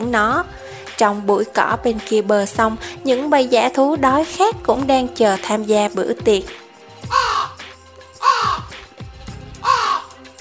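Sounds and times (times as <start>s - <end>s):
speech: 0.1s - 7.2s
black crow cawing in a bush: 7.1s - 7.6s, 8.2s - 8.7s, 9.6s - 10.2s.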